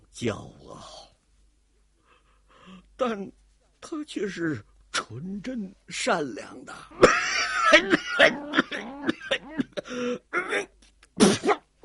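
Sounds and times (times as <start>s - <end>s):
speech: 0.2s - 1.0s, 3.0s - 11.6s
voice imitating an old man's coughing fit: 7.0s - 11.8s.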